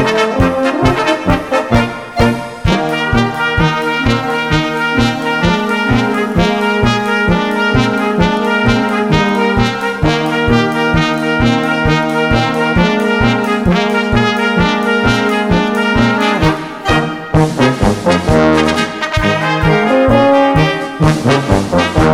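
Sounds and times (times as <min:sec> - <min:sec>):
trumpet: 0:00.0 - 0:22.1.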